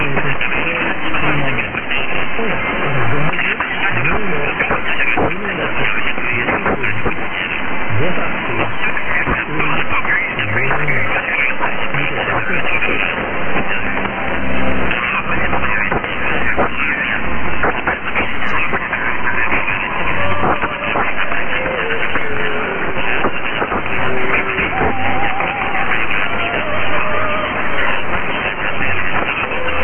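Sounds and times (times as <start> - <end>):
radio: 0.0 - 29.8.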